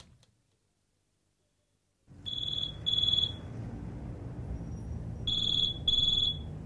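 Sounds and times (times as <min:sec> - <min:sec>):
telephone ringing unanswered: 0:02.3 - 0:03.4, 0:05.3 - 0:06.4.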